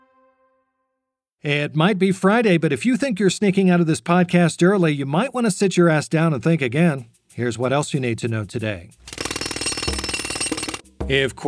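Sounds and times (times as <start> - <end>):
speech: 1.4 - 9.2, 11.1 - 11.4
jackhammer pounding: 9.0 - 10.8.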